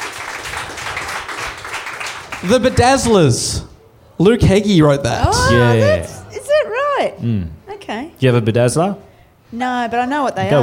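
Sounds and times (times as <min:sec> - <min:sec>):
audience applause: 0:00.0 - 0:03.2
speech: 0:02.4 - 0:06.1, 0:07.0 - 0:10.6.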